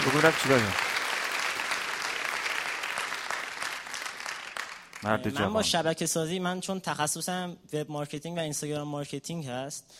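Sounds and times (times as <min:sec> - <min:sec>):
crowd applauding: 0:00.0 - 0:05.7
speech: 0:00.1 - 0:00.9, 0:05.0 - 0:09.9.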